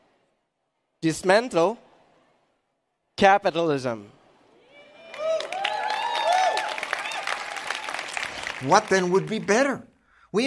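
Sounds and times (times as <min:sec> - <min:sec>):
speech: 0:01.0 - 0:01.8, 0:03.2 - 0:04.2, 0:08.6 - 0:10.4
crowd whooping and cheering: 0:04.5 - 0:09.2
audience applause: 0:04.8 - 0:09.8.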